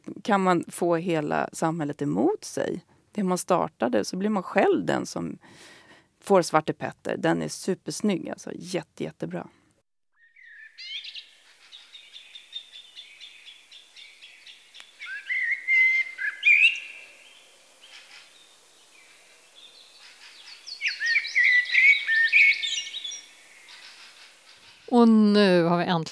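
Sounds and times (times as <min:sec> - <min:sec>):
speech: 0:00.2 - 0:09.6, 0:25.0 - 0:26.0
common blackbird singing: 0:10.2 - 0:25.0.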